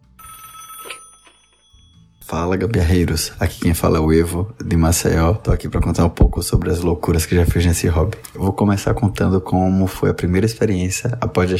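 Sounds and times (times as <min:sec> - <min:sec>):
telephone ringing for incoming call: 0:00.0 - 0:02.2
speech: 0:02.3 - 0:11.5.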